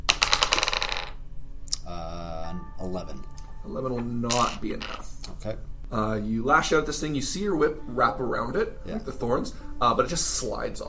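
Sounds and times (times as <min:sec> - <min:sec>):
faint sustained hum: 0:00.0 - 0:10.8
dice rolling on a table: 0:00.1 - 0:01.2, 0:04.3 - 0:05.0
speech: 0:02.8 - 0:10.8.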